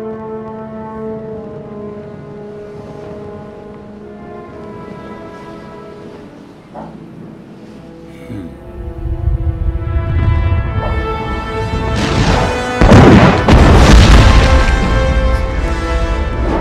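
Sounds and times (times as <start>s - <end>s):
lightning strike destroying a temple: 10.3s - 16.5s.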